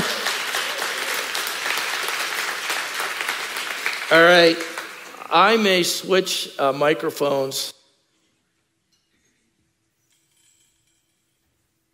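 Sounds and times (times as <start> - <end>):
audience clapping: 0.0 - 5.7
speech: 4.1 - 4.7, 5.3 - 7.8.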